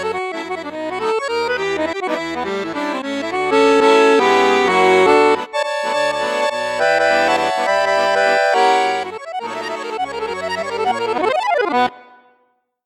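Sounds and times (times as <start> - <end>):
accordion on bassoon and flute register playing a saltarello: 0.0 - 12.4.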